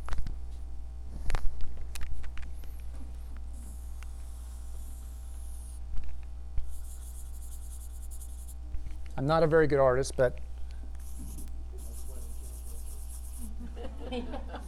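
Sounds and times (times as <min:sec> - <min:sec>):
pen or pencil scratching over paper while drawing a picture: 0:03.6 - 0:05.8, 0:06.6 - 0:08.6, 0:11.0 - 0:13.6
speech: 0:09.2 - 0:10.5
laughter: 0:13.5 - 0:14.6.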